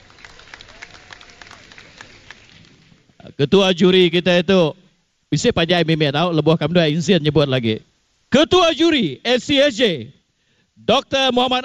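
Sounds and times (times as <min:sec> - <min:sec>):
audience applause: 0:00.0 - 0:03.0
speech: 0:03.4 - 0:10.2, 0:10.8 - 0:11.6.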